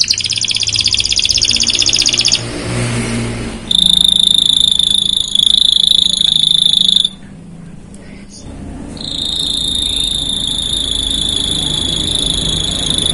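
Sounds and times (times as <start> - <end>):
Canary song: 0.0 - 2.5, 3.7 - 7.2, 9.0 - 13.1.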